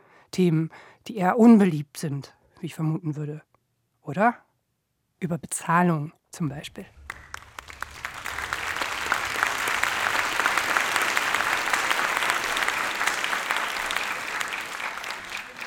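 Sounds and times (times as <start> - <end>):
speech: 0.3 - 4.5, 5.2 - 7.0
clapping: 6.8 - 15.6.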